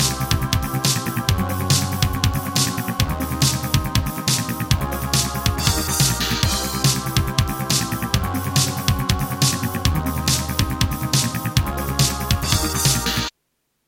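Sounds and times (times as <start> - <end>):
wavetable synthesizer: 0.0 - 13.3.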